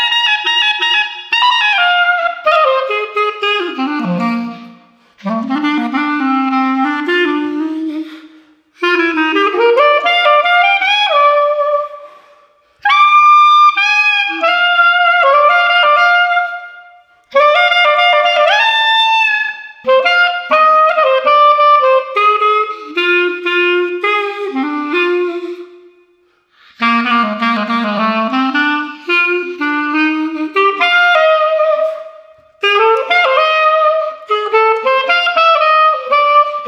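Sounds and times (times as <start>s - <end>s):
street clarinet playing: 0.0s - 36.6s.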